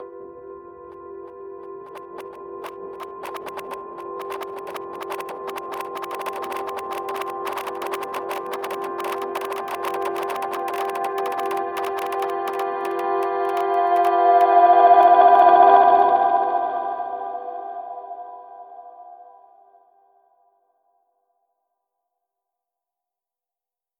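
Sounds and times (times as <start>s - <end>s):
scenic crackling hybrid instrument: 0.6s - 16.1s.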